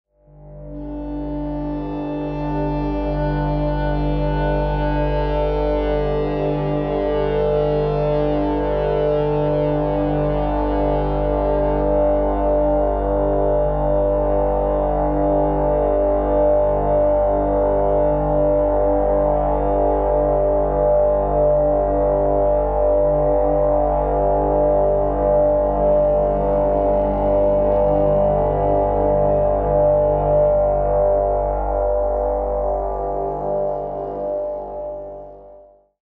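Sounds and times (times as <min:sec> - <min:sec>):
looping no-input mixer feedback: 0:00.4 - 0:35.6.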